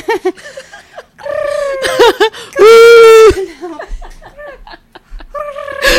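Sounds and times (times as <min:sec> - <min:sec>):
laughter: 0:00.0 - 0:05.9
person's voice imitating an owl call: 0:01.2 - 0:03.2, 0:05.3 - 0:05.9.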